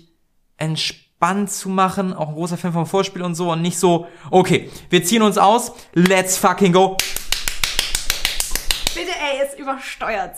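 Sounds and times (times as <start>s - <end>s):
speech: 0.6s - 7.2s, 9.6s - 10.3s
loud hand clap: 6.9s - 9.1s.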